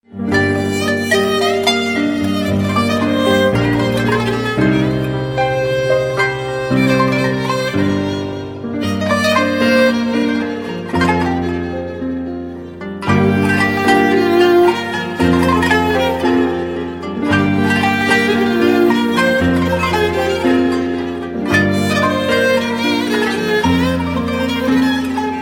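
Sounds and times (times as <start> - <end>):
Turkish melody: 0.0 - 25.4.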